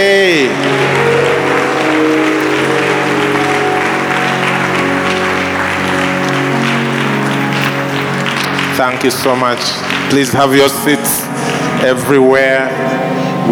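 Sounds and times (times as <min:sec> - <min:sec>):
audience clapping hands: 0:00.0 - 0:12.2
speech: 0:08.8 - 0:11.2, 0:11.8 - 0:13.5.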